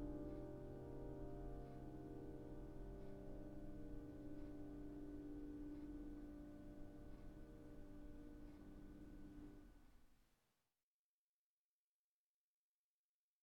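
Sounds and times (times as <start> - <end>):
piano playing a folk tune: 0.0 - 9.6.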